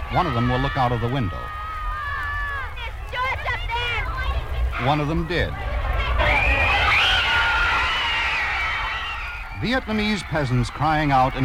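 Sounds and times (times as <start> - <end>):
crowd of young women screaming outside the Plaza Hotel: 0.0 - 4.8, 5.6 - 11.4
speech: 0.1 - 1.6, 4.8 - 5.7, 9.6 - 11.4
low rumble: 1.6 - 10.4.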